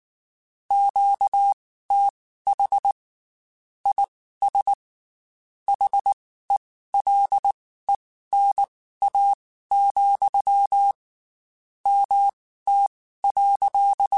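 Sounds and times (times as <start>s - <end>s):
Morse code radio QSOs: 0.7s - 3.0s, 3.9s - 4.8s, 5.7s - 6.2s, 7.0s - 11.0s, 11.9s - 14.1s.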